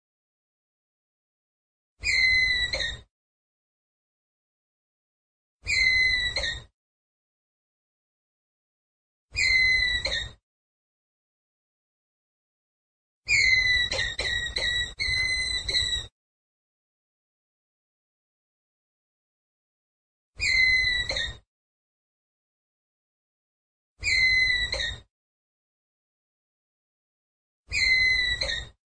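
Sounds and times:
ground squirrel whistled call: 2.0 - 3.0, 5.6 - 6.6, 9.4 - 10.4, 13.3 - 16.1, 20.4 - 21.4, 24.0 - 25.0, 27.7 - 28.7.

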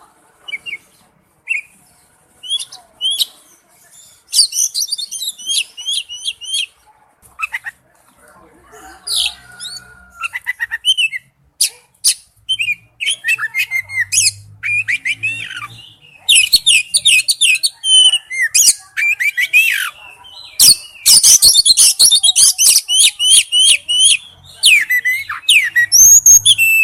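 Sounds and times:
Oriental magpie-robin song: 0.5 - 1.8, 2.4 - 6.7, 9.1 - 11.3, 12.0 - 26.8.

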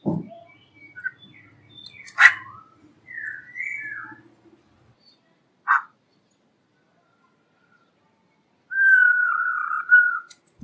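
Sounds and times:
black-throated laughingthrush song of whistles and a harsh burst: 0.2 - 4.2, 8.7 - 10.4.

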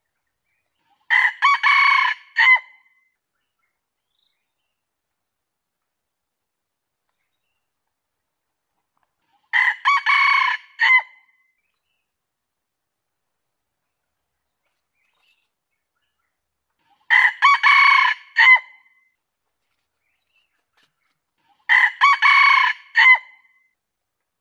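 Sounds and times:
junglefowl crowing: 1.1 - 2.8, 9.5 - 11.1, 17.1 - 18.8, 21.7 - 23.4.

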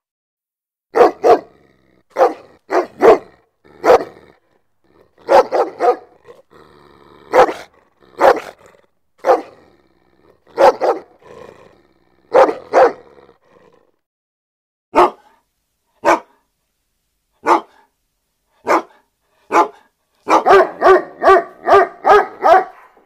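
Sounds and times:
German Shepherd barking: 0.9 - 4.3, 5.2 - 6.3, 7.3 - 9.6, 10.5 - 11.2, 12.3 - 13.2, 14.9 - 15.4, 16.0 - 16.4, 17.4 - 17.9, 18.6 - 23.0.

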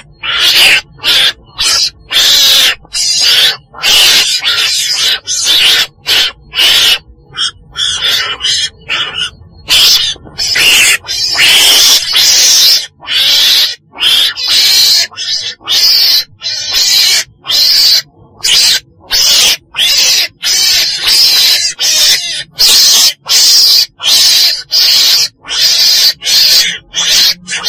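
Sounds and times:
weasel screeching: 0.0 - 27.6.

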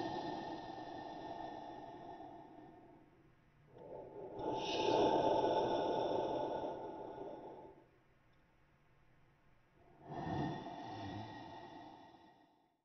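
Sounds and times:
monster breathing while sleeping: 0.0 - 3.0, 3.8 - 7.9, 10.0 - 12.7.

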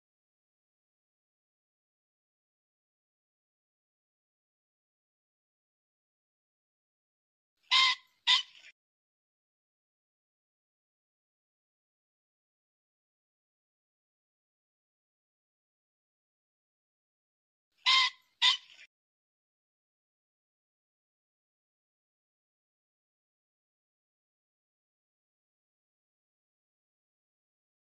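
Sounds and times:
pheasant squawking: 7.7 - 8.7, 17.8 - 18.9.

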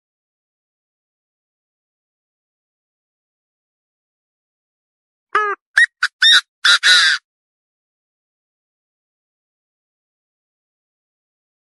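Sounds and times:
partridge harsh calls and squawks: 5.4 - 7.2.

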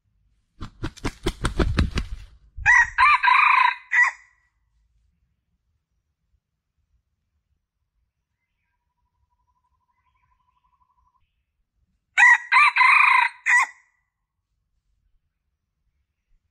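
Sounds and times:
Red junglefowl crowing: 2.6 - 4.3, 12.2 - 13.8.

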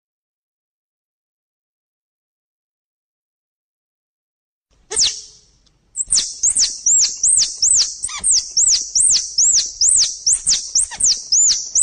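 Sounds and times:
squirrel chirping calls: 4.9 - 11.8.

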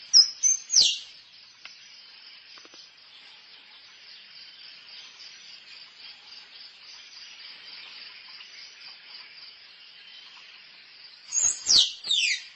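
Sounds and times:
squirrel chirping: 0.2 - 1.1, 11.3 - 12.5.

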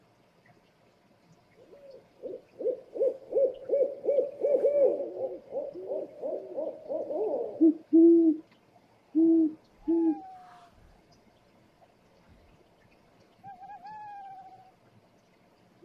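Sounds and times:
owl hooting: 1.7 - 8.4, 9.1 - 10.7.

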